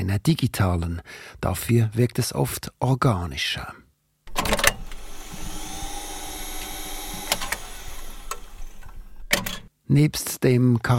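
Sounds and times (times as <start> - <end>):
speech: 0.0 - 3.8, 9.9 - 10.9
analog tape machine running: 4.3 - 9.7.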